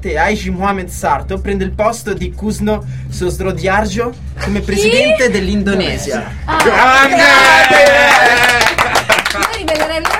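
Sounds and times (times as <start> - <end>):
speech: 0.0 - 10.1
applause: 6.6 - 10.1.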